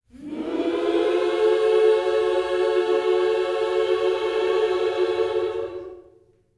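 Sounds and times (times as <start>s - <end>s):
gospel vocal scoops in a minor key: 0.0s - 6.4s.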